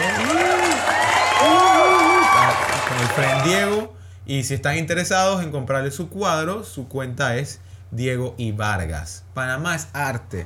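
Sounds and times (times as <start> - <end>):
applause: 0.0 - 3.9
speech: 3.2 - 10.4.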